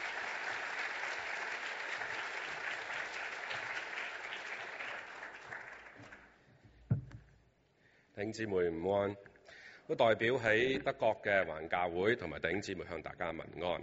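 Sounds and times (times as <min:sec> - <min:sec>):
warm applause from audience: 0:00.0 - 0:06.4
single louder thump: 0:06.9 - 0:07.3
speech: 0:08.2 - 0:09.3, 0:09.9 - 0:13.8.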